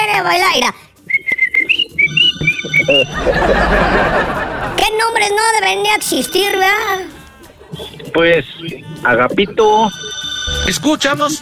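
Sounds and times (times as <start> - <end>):
speech: 0.2 - 0.9, 2.9 - 7.1, 7.7 - 11.3
person whistling a tune: 1.0 - 3.2
laughter: 2.8 - 7.5.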